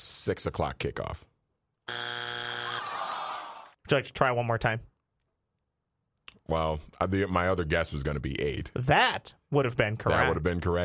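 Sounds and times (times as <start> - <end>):
speech: 0.0 - 1.3, 3.9 - 4.9, 6.5 - 10.8
wrong-answer game show buzzer: 1.9 - 3.1.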